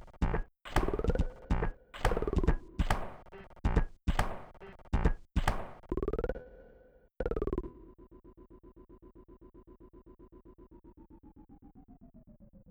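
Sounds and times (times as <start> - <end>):
140 bpm drums remix fragments: 0.0 - 5.9.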